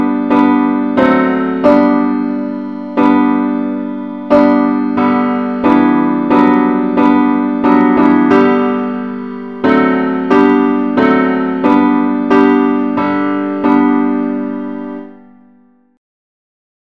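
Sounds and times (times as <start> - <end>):
accompaniment music in the key of G: 0.0 - 15.2.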